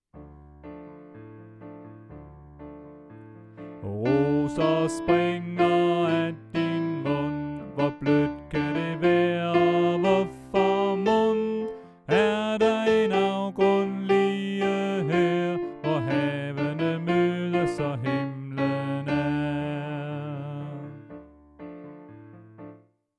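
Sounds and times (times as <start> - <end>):
soprano voice: 3.8 - 21.1.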